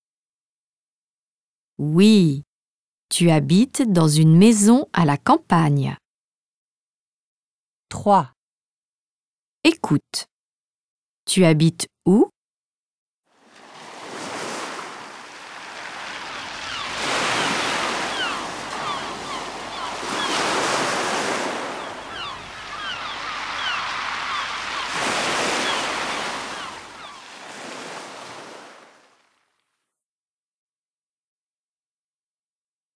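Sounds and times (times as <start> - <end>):
speech: 1.8 - 2.5, 3.1 - 6.0, 7.9 - 8.4, 9.6 - 10.3, 11.3 - 12.3
sea waves rolling in at the seaside: 13.3 - 29.6.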